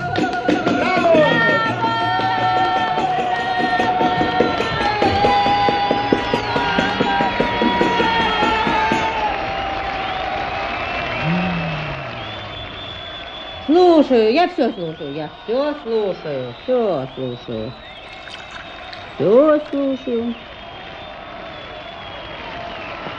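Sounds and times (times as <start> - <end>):
audience applause: 0.0 - 23.1
voices cheering: 0.0 - 23.1
speech: 14.1 - 17.9, 19.2 - 20.5.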